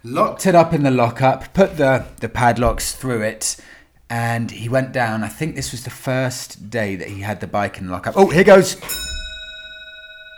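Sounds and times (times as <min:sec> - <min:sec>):
speech: 0:00.0 - 0:09.2
grandfather clock chiming: 0:08.1 - 0:10.3.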